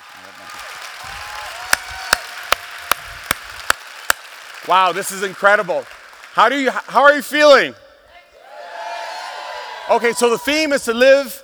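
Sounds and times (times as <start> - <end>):
hand claps: 0.2 - 7.0
speech: 4.7 - 7.8, 9.9 - 11.4.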